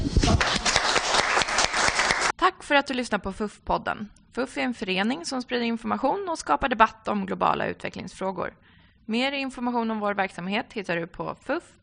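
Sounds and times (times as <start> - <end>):
audience applause: 0.0 - 2.3
speech: 2.4 - 11.8.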